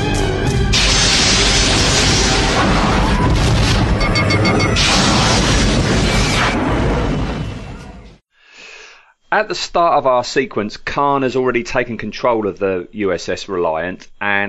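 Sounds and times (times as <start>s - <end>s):
phaser fire and booming blasts in a Star Trek II space battle: 0.7s - 4.0s, 4.6s - 7.7s
speech: 9.4s - 14.4s.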